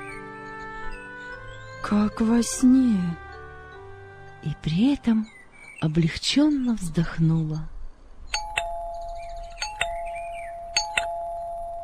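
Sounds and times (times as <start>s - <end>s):
speech: 1.8s - 3.2s, 4.4s - 7.7s
electronic doorbell ringing: 8.4s - 11.8s.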